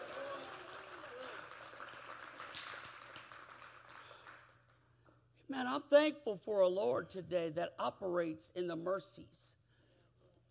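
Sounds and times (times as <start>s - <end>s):
audience clapping: 0.0s - 4.9s
speech: 5.5s - 9.6s.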